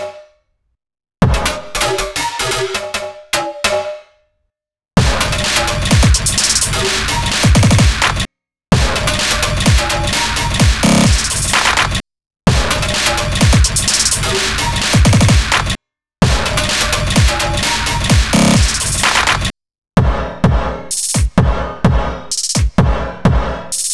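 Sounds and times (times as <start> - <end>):
drums: 1.2 - 3.9, 5.0 - 23.9.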